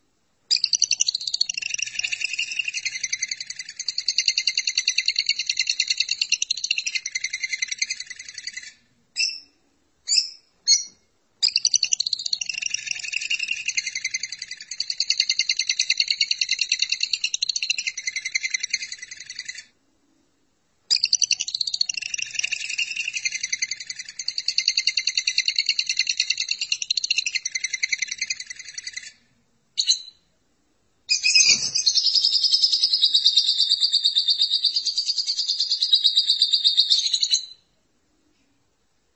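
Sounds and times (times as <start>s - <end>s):
lovebird twittering song: 0.5s - 9.5s, 10.1s - 19.6s, 20.9s - 29.2s, 31.1s - 37.6s.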